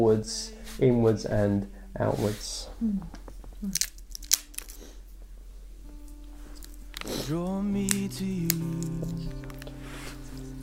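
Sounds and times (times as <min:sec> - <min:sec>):
speech: 0:00.0 - 0:03.9, 0:07.3 - 0:09.4
low steady hum: 0:00.0 - 0:10.6
communion bread being broken and chewed: 0:03.4 - 0:05.0, 0:07.8 - 0:09.8.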